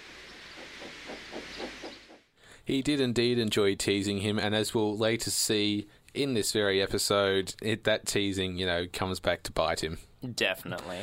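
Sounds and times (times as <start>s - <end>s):
steam engine steam hissing: 0.0s - 2.0s
speech: 2.7s - 11.0s.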